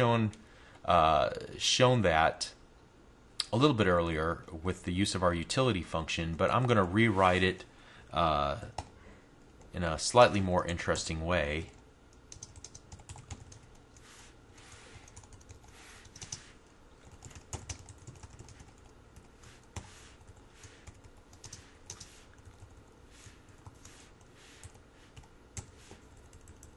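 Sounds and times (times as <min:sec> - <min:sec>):
speech: 0:00.0 - 0:02.6, 0:03.5 - 0:08.9, 0:09.8 - 0:11.8
typing a name on a computer keyboard while writing code: 0:11.7 - 0:14.1, 0:15.0 - 0:26.7.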